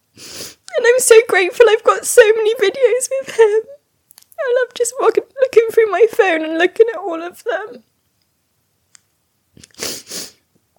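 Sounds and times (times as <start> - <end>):
speech: 1.0 - 3.8, 4.4 - 7.9
sniffling: 9.6 - 10.4.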